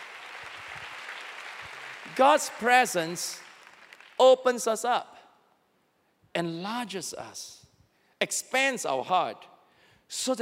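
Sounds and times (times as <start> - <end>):
audience applauding: 0.0 - 4.2
speech: 2.2 - 3.4, 4.2 - 5.1, 6.4 - 7.6, 8.2 - 9.5, 10.1 - 10.4.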